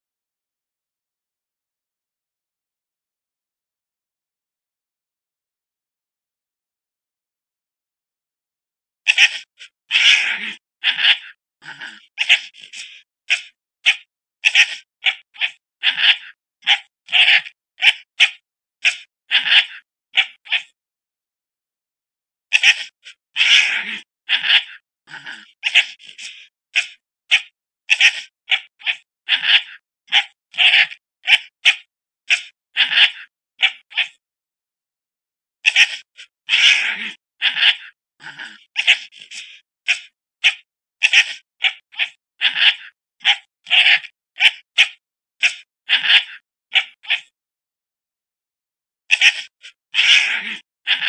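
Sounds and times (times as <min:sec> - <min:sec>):
fox barking: 0:09.1 - 0:20.8, 0:22.5 - 0:34.2, 0:35.6 - 0:47.3, 0:49.1 - 0:51.0.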